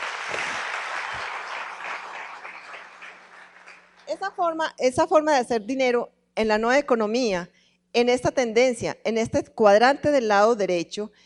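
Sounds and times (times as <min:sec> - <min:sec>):
audience applause: 0:00.0 - 0:04.1
speech: 0:04.1 - 0:11.2.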